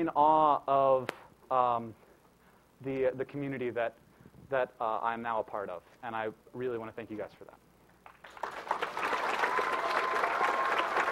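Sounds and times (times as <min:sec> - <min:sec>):
speech: 0:00.0 - 0:02.0, 0:02.8 - 0:07.6
audience applause: 0:08.0 - 0:11.1.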